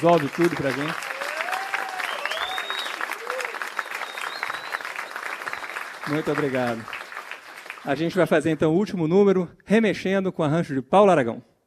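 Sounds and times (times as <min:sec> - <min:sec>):
speech: 0:00.0 - 0:01.1, 0:06.1 - 0:07.0, 0:07.8 - 0:11.5
audience applause: 0:00.0 - 0:08.4.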